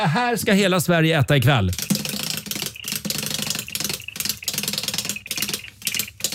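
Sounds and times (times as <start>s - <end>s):
speech: 0.0s - 1.9s
prize wheel spinning on a TV show: 1.4s - 6.3s.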